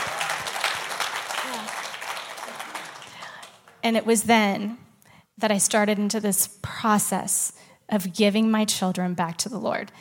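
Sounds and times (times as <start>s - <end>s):
audience hand clapping: 0.0s - 3.8s
speech: 3.8s - 4.8s, 5.4s - 10.0s.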